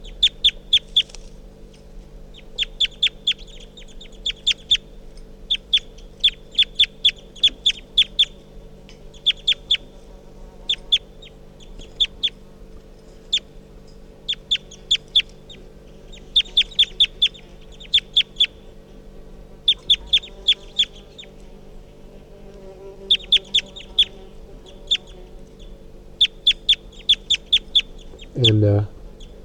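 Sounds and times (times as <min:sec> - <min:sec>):
bird calling in sharp high-pitched chirps: 0:00.0 - 0:01.1, 0:02.3 - 0:04.9, 0:05.5 - 0:08.4, 0:09.1 - 0:10.0, 0:10.6 - 0:12.4, 0:14.2 - 0:18.7, 0:19.6 - 0:21.4, 0:23.0 - 0:29.4
low steady hum: 0:00.0 - 0:29.4
speech: 0:28.4 - 0:28.9.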